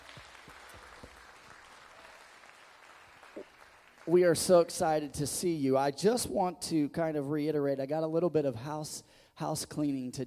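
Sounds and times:
audience applause, hand clapping: 0:00.0 - 0:04.5
speech: 0:03.4 - 0:10.2.

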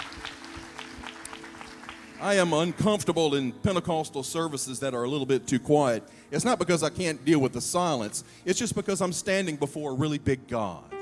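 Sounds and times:
audience hand clapping applause: 0:00.0 - 0:02.6
speech: 0:02.2 - 0:10.9.

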